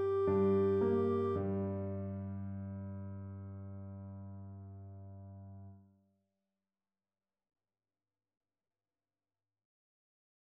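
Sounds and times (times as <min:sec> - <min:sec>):
clarinet: 0:00.0 - 0:02.2.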